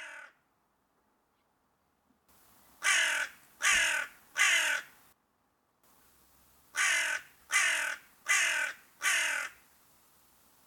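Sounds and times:
crow cawing: 0.0 - 0.4, 2.8 - 5.0, 6.7 - 9.6.

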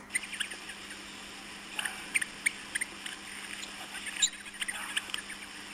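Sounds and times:
Willie wagtail singing: 0.1 - 1.0, 1.8 - 5.6.

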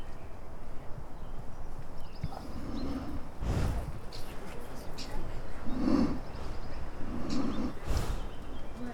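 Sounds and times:
donkey snorting breath: 2.4 - 8.8.

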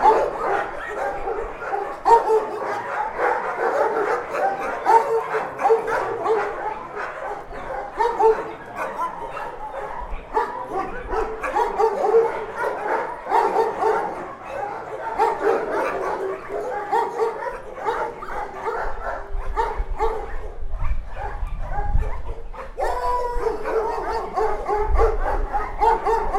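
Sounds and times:
dogs barking in a shelter: 0.0 - 26.3.

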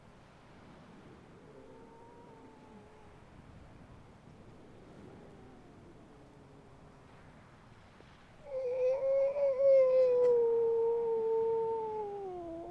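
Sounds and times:
grey seal wailing: 8.5 - 12.6.

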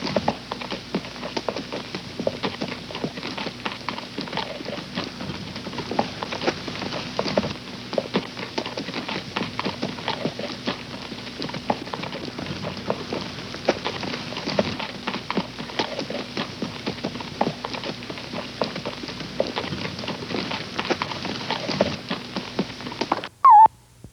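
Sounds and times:
horse hoofbeats: 0.0 - 23.7.

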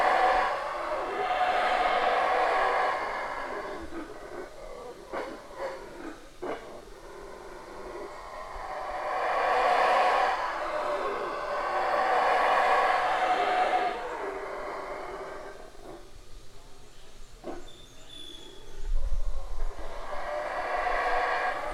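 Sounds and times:
howler monkey roaring in a jungle: 0.0 - 16.7, 17.4 - 21.7.

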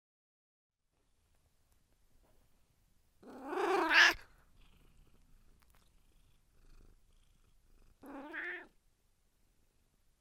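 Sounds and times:
cat meowing: 3.2 - 4.2, 8.0 - 8.8.

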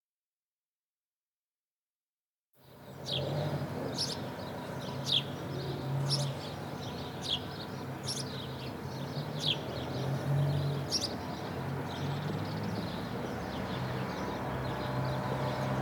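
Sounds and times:
sparrows giving brief high chirps: 2.6 - 15.8.

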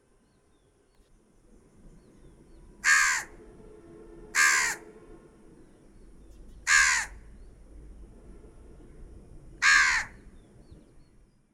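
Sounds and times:
crow giving harsh raspy caws: 2.8 - 3.3, 4.3 - 4.8, 6.6 - 7.2, 9.6 - 10.2.

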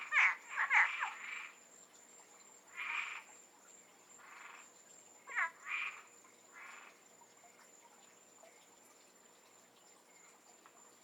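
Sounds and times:
frogs croaking: 0.0 - 7.8.

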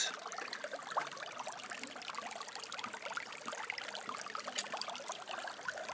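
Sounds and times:
water running through an old stone drainage channel in Montségur, France: 0.0 - 5.9.

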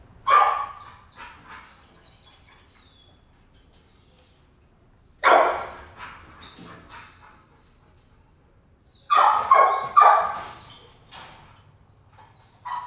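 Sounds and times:
kennel dog barking: 0.2 - 1.0, 5.2 - 6.2, 9.1 - 10.6.

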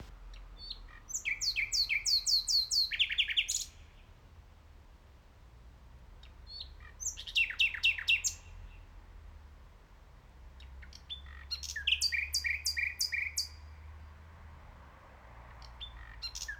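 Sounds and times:
common nightingale singing: 0.0 - 3.9, 6.6 - 8.6, 10.9 - 13.6, 15.8 - 16.5.

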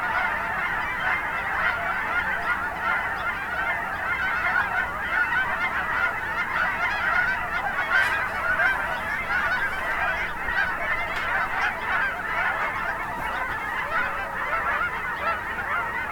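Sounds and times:
flock of geese calling at a national wildlife refuge in Oregon: 0.0 - 16.0.

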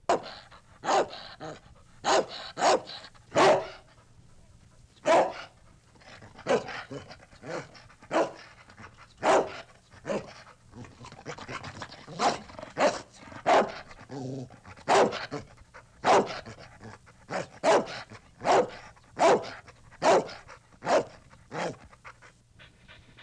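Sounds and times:
dog giving deep aggressive barks: 0.1 - 3.9, 5.0 - 5.6, 6.5 - 6.8, 7.5 - 8.4, 9.2 - 10.3, 12.1 - 13.8, 14.8 - 15.4, 16.0 - 16.5, 17.3 - 21.8.

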